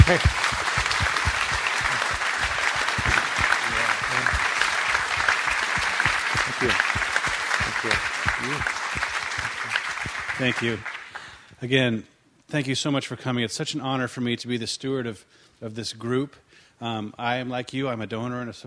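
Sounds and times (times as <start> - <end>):
round of applause from a group: 0.0 - 11.5
speech: 0.1 - 0.4, 6.6 - 7.0, 10.4 - 10.9, 11.6 - 18.6.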